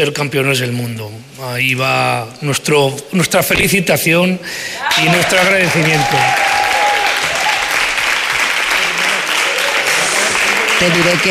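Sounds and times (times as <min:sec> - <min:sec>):
speech: 0:00.0 - 0:06.6, 0:10.8 - 0:11.3
loud sustained applause from a large audience: 0:04.8 - 0:11.3.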